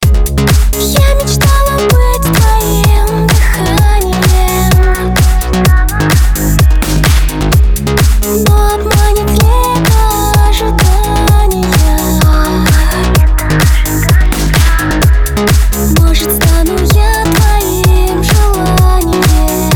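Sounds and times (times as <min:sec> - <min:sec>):
electro house music: 0:00.0 - 0:19.7.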